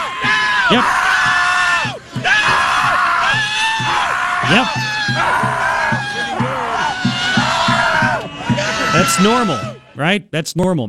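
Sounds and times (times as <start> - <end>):
protesters screaming at the sky: 0.0 - 10.0
speech: 0.7 - 1.0, 4.5 - 5.2, 9.1 - 10.8.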